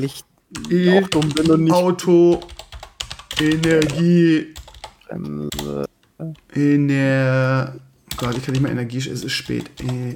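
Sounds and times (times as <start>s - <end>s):
speech: 0.0s - 2.5s, 3.4s - 10.1s
typing on a computer keyboard to search Google: 0.6s - 1.6s, 2.3s - 4.0s, 4.6s - 5.8s, 8.1s - 8.7s, 9.4s - 10.1s.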